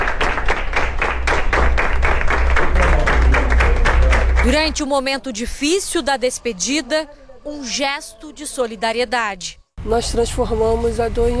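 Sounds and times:
hospital staff applauding: 0.0s - 4.8s
speech: 4.4s - 11.3s.

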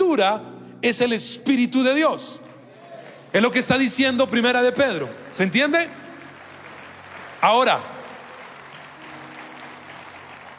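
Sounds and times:
speech: 0.2s - 2.5s, 3.3s - 6.0s, 7.4s - 7.9s
faint applause from a church congregation praising the Lord: 4.9s - 10.5s.

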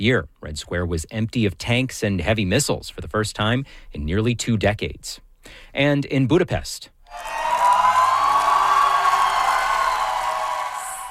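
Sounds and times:
speech: 0.0s - 7.4s
crowds cheering for Hungary's new prime minister: 7.1s - 11.0s.

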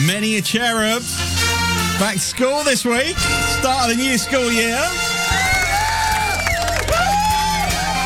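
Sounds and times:
speech: 0.2s - 5.1s
cheering: 5.0s - 8.0s.

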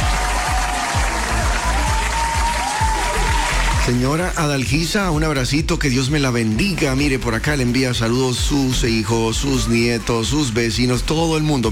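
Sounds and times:
applause: 0.0s - 4.7s
speech: 3.9s - 11.7s.

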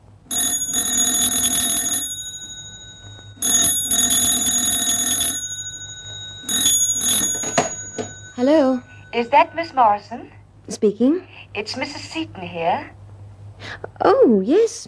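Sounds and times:
telephone ringing with metallic bell trills: 0.3s - 10.0s
speech: 8.4s - 13.0s, 13.6s - 14.8s.

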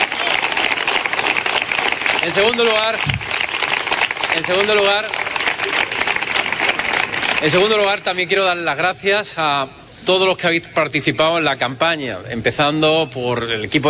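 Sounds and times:
audience applause: 0.0s - 8.1s
speech: 2.3s - 3.2s, 4.4s - 6.0s, 7.4s - 13.8s.

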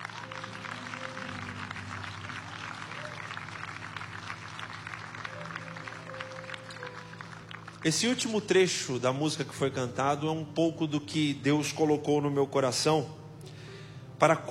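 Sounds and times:
crowd applause: 0.0s - 9.0s
low sustained musical tones: 0.0s - 14.5s
speech: 7.8s - 13.2s, 14.2s - 14.5s.

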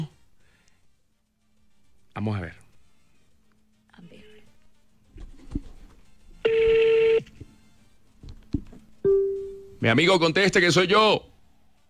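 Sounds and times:
speech: 2.2s - 2.6s, 9.8s - 11.3s
telephone electronic tone: 6.4s - 7.3s.

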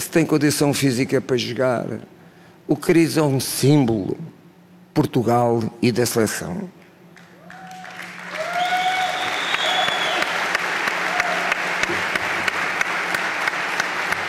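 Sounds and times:
speech: 0.0s - 4.3s, 5.0s - 6.8s
audience applause: 7.2s - 14.2s.

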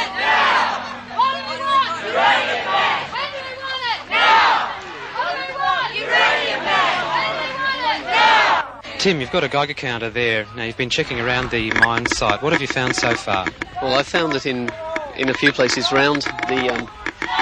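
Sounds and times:
protesters chanting around security area: 0.0s - 17.4s
speech: 9.0s - 17.4s.

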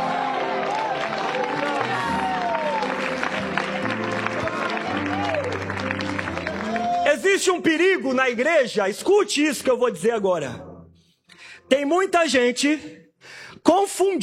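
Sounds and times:
audience shouting and cheering: 0.0s - 7.4s
scattered clapping: 0.4s - 7.0s
speech: 7.4s - 10.7s, 11.7s - 13.0s, 13.7s - 14.2s.

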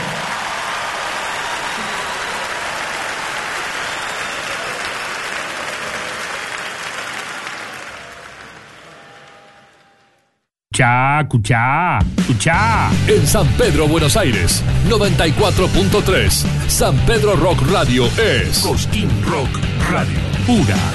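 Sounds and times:
crowd applauding: 0.0s - 10.4s
speech: 10.8s - 20.9s.

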